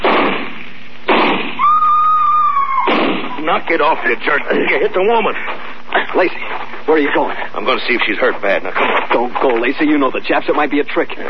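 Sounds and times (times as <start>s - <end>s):
rifle shots: 0.0s - 1.6s, 2.9s - 3.4s
steady high whine: 0.0s - 11.2s
speech: 3.6s - 11.2s.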